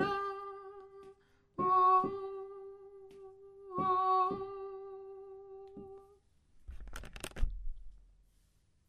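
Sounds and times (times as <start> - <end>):
soprano singing: 0.0 - 6.2.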